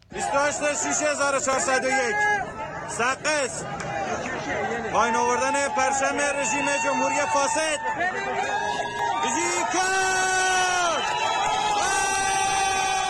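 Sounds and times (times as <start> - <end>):
angry protesters shouting and chanting: 0.0 - 13.0.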